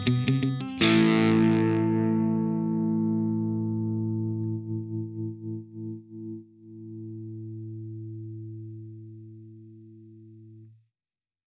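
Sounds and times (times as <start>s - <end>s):
Mesa dual guitar amp crunch: 0.0s - 9.1s.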